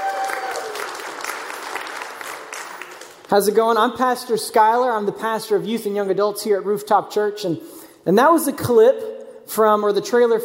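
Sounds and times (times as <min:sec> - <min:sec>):
audience clapping hands: 0:00.0 - 0:03.9
speech: 0:03.3 - 0:10.4.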